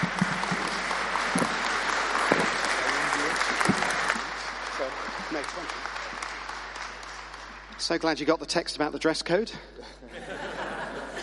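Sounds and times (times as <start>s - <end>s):
audience applause welcoming someone to the front: 0.0s - 8.6s
speech: 7.9s - 10.3s
laughter: 9.8s - 11.2s.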